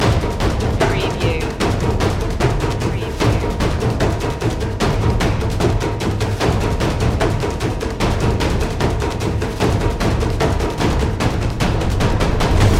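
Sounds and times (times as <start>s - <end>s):
taiko drums loop: 0.0s - 12.7s.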